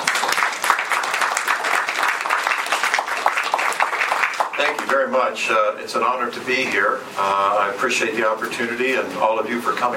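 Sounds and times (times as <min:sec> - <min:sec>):
audience applause at an environmental and energy policy event: 0:00.0 - 0:05.2
speech: 0:04.6 - 0:09.9.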